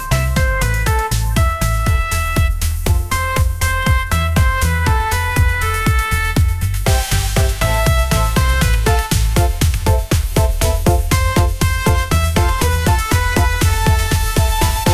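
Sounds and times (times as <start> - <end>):
upbeat pop melody: 0.0 - 14.9.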